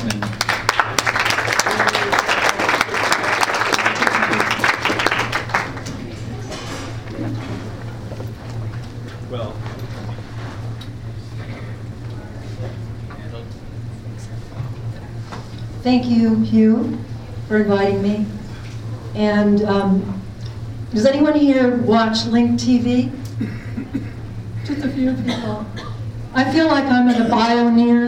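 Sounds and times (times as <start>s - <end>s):
audience applauding: 0.0s - 6.5s
steady low hum: 0.0s - 28.0s
speech: 15.9s - 18.4s, 19.2s - 20.2s, 20.9s - 23.6s, 26.4s - 28.0s.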